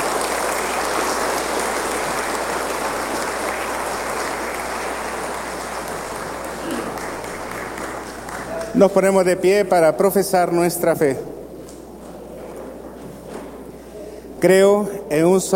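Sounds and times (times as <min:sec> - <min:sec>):
applause: 0:00.0 - 0:09.4
speech: 0:08.8 - 0:11.4, 0:14.4 - 0:15.5.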